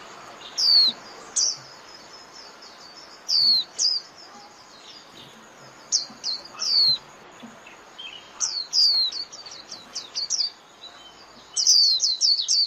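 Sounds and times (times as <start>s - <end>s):
White-eye calls: 0.0s - 12.6s.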